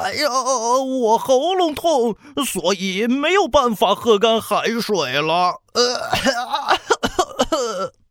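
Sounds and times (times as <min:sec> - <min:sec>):
speech: 0:00.0 - 0:08.0
voice acting a cartoon shark coughing: 0:05.8 - 0:08.0.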